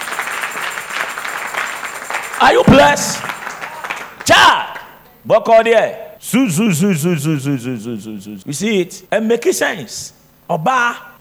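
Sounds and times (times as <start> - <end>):
crowd clapping: 0.0 - 4.9
speech: 2.4 - 3.4, 4.3 - 4.6, 5.2 - 11.1.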